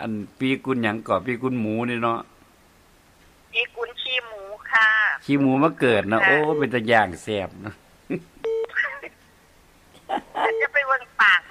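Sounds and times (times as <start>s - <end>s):
speech: 0.0s - 2.3s, 5.3s - 8.4s
people talking over the phone line: 3.5s - 7.3s, 8.4s - 9.2s, 10.2s - 11.4s
call-waiting beeps on a phone line: 6.2s - 6.9s, 8.4s - 8.9s, 10.4s - 10.9s.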